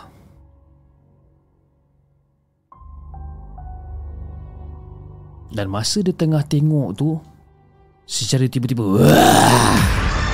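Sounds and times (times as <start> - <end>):
speech: 5.5 - 7.3, 8.1 - 10.0
loud deep growling voice effect: 8.8 - 10.2.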